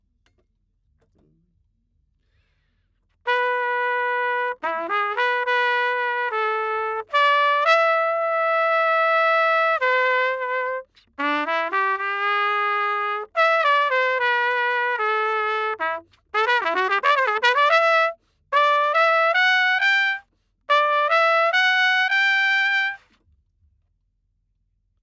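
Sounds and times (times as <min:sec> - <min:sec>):
trumpet: 0:03.2 - 0:23.2.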